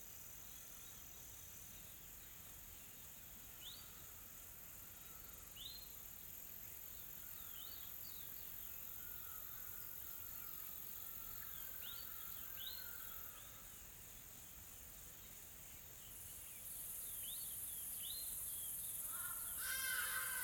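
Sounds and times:
insects droning: 0.0 - 20.4.

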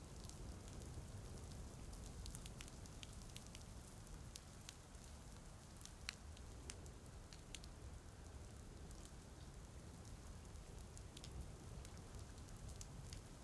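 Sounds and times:
soft rain: 0.0 - 13.4.

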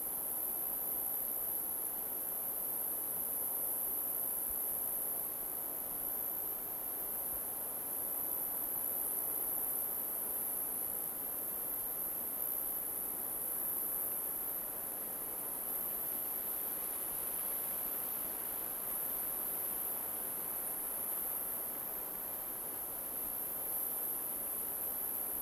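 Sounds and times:
crickets trilling in an alpine forest: 0.2 - 25.4.

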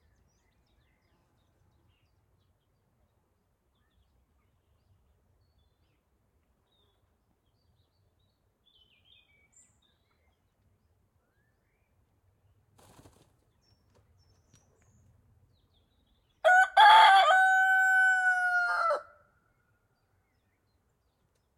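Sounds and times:
rooster crowing in a countryside field: 16.4 - 19.2.

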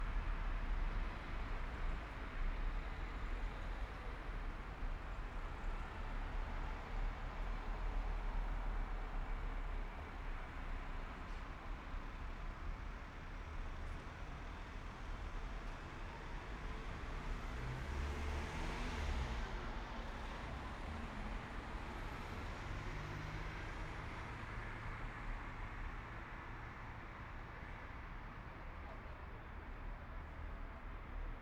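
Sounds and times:
night traffic on a main street heard from a balcony in Madrid: 0.0 - 31.3.

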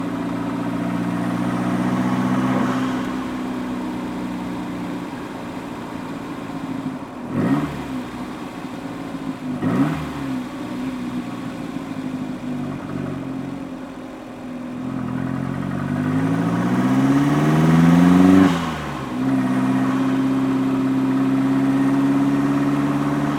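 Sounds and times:
Toyota endurance race car with Audi engine driving, stopping and reversing: 0.0 - 23.3.

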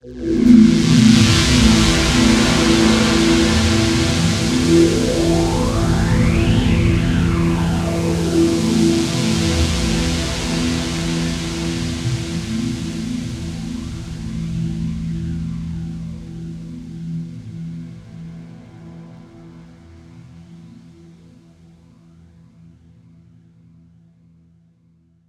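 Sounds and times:
space ambience: 0.0 - 18.4.

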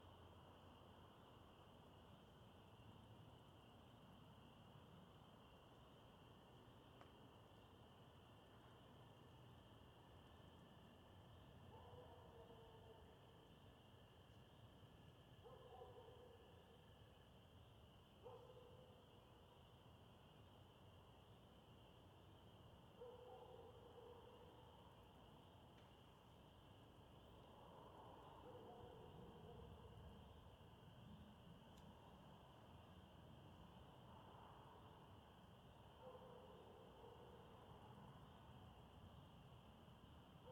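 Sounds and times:
crickets chirping in suburbia at dusk: 0.0 - 40.4
dog barking in suburbia at dusk: 11.7 - 13.1, 15.4 - 16.6, 18.2 - 19.0, 23.0 - 24.6, 28.4 - 30.0, 36.0 - 37.8.

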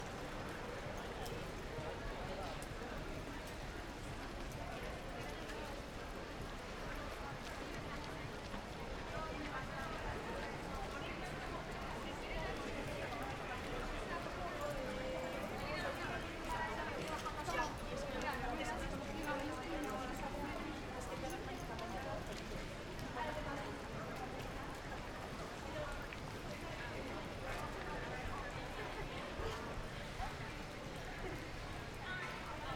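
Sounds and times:
pedestrians walla on a side street in Madrid Sol: 0.0 - 32.7
rain on a side street in Madrid Sol: 0.0 - 32.7.

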